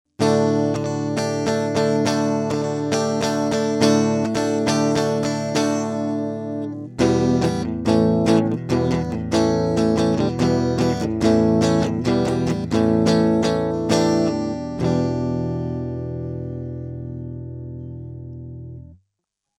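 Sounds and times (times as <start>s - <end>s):
guitar through Audient iD44 mkII filter: 0.1s - 19.0s.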